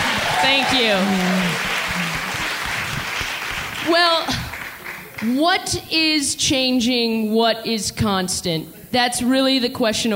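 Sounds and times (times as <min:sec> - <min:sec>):
crowd applauding: 0:00.0 - 0:05.3
speech: 0:00.5 - 0:01.6, 0:05.2 - 0:10.1.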